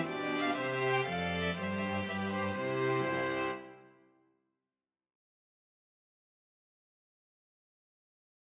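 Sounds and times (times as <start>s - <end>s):
string quartet playing a trumpet tune: 0.0s - 3.9s.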